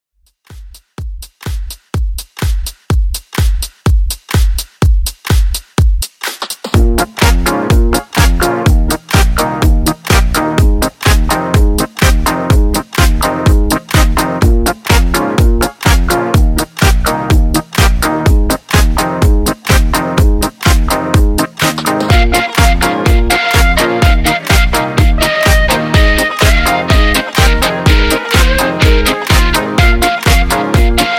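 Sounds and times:
80s disco music at 125 bpm: 0:00.3 - 0:31.1.

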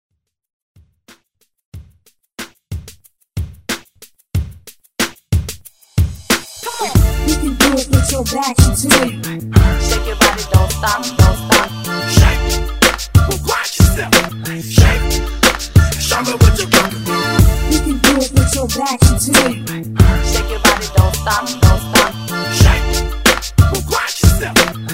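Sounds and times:
throwback hype beat: 0:01.8 - 0:24.9.

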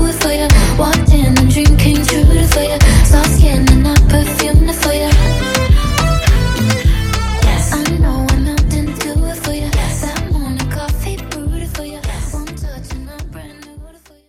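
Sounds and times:
pop reggae music: 0:00.0 - 0:14.2.

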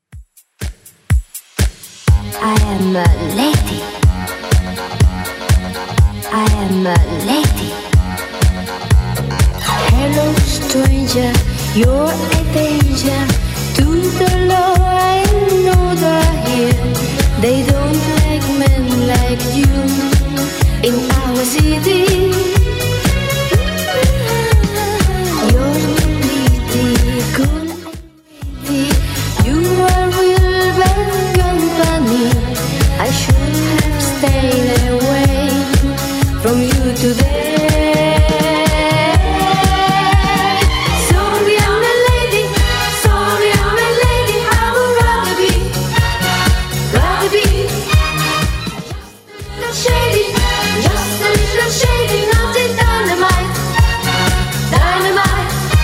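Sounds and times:
70s dance music at 123 bpm: 0:00.0 - 0:55.8.

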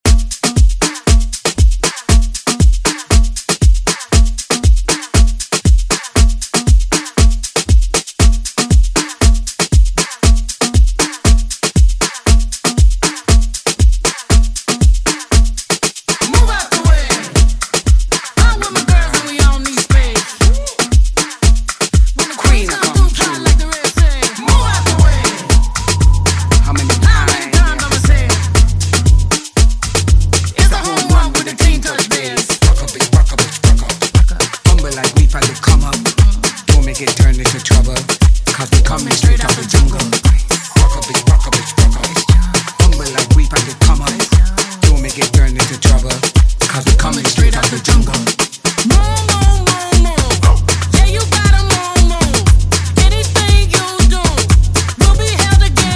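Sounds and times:
Moombahton beat on Redrum drum machine: 0:00.0 - 0:55.9.

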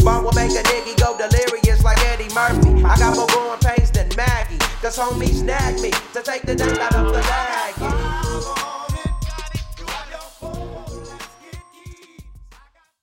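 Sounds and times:
old school bass at 91 bpm: 0:00.0 - 0:00.8, 0:01.6 - 0:03.2, 0:03.8 - 0:11.2.

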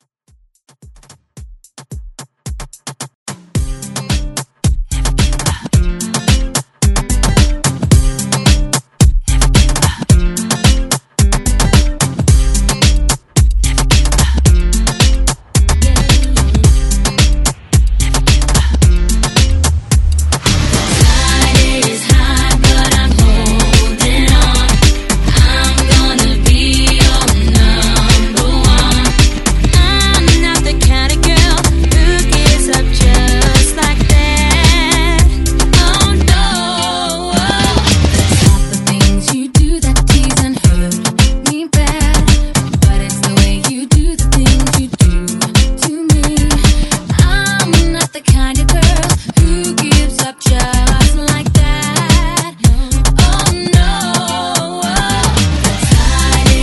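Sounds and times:
moombahton music: 0:00.5 - 0:56.6.

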